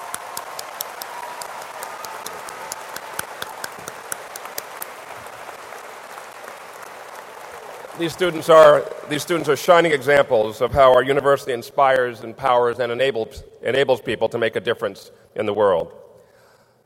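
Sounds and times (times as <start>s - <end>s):
audience applause: 0.0s - 9.6s
speech: 8.0s - 16.0s.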